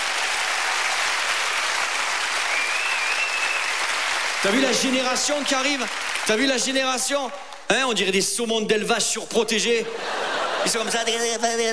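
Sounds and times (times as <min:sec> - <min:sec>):
crowd applauding: 0:00.0 - 0:07.7
speech: 0:04.4 - 0:11.7
laughter: 0:09.8 - 0:11.7.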